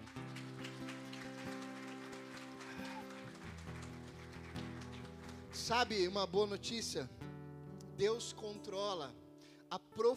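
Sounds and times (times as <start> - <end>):
audience applauding: 0.0 - 6.0
speech: 5.6 - 7.2, 8.0 - 10.1.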